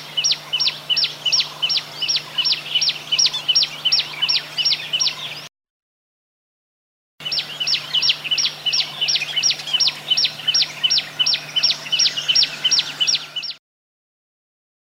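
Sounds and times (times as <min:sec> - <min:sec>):
olive-backed tailorbird calling: 0:00.0 - 0:05.5, 0:07.2 - 0:13.6.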